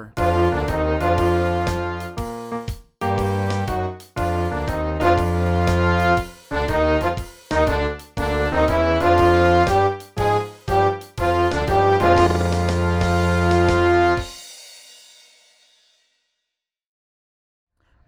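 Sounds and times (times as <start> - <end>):
jazz band audition practice track: 0.2 - 14.4.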